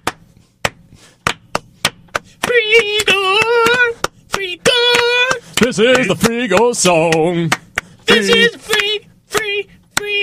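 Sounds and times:
children clapping: 2.4 - 10.1
speech: 5.7 - 7.6, 8.2 - 8.6.

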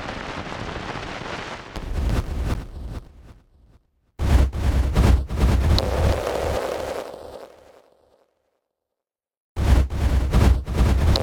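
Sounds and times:
space battle blasts: 1.8 - 3.7, 4.2 - 6.6, 9.6 - 11.1.

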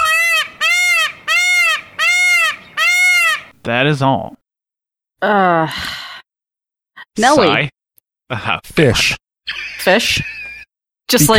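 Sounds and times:
peacock screaming: 0.0 - 4.4
speech: 3.6 - 4.4, 5.2 - 6.0, 7.2 - 10.4, 11.1 - 11.3.

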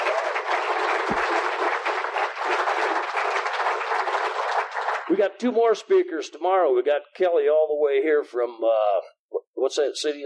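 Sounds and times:
round of applause: 0.0 - 5.3
speech: 5.2 - 10.2.

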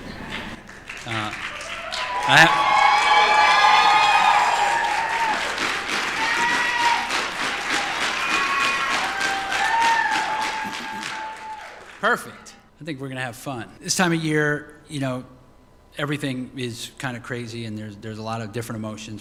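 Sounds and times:
graduates cheering and clapping: 0.0 - 12.3
speech: 1.0 - 1.5, 2.3 - 2.7, 12.0 - 15.4, 16.0 - 19.1
whoops and shouted voices: 1.5 - 11.9.

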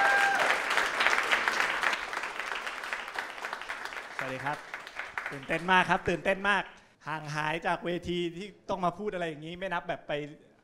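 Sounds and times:
audience applause: 0.0 - 5.9
speech: 4.3 - 4.7, 5.3 - 10.5.

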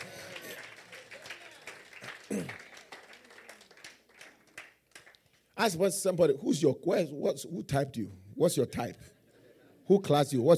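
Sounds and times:
audience clapping: 0.0 - 5.6
speech: 5.6 - 9.2, 9.9 - 10.5.

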